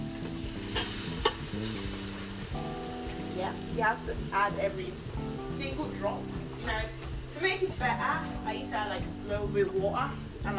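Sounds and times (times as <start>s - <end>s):
tomato paste sizzling in pan: 0.0s - 7.6s
speech: 3.5s - 10.5s.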